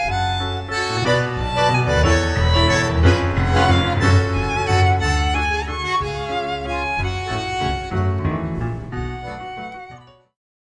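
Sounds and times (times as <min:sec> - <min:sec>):
violin: 0:00.0 - 0:10.3.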